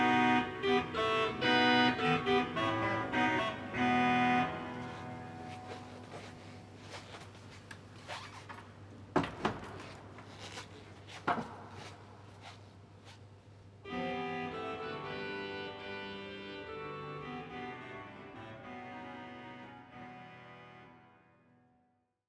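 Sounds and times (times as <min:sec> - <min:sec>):
instrument tuning: 0:00.0 - 0:07.2, 0:13.8 - 0:21.0.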